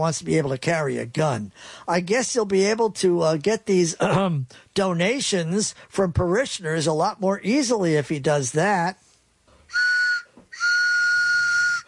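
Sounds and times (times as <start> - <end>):
speech: 0.0 - 9.0
train whistle blasts: 9.7 - 11.8.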